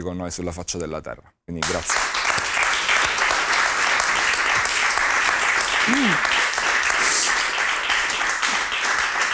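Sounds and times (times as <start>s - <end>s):
speech: 0.0s - 2.3s, 5.8s - 6.4s
audience applause: 1.6s - 9.3s.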